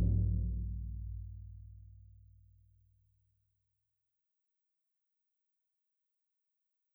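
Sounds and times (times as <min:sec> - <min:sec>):
drums playing: 0:00.0 - 0:01.6.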